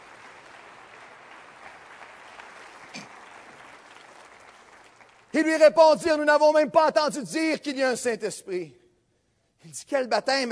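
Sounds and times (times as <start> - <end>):
audience applause: 0.0 - 5.4
speech: 5.4 - 8.8, 9.7 - 10.4.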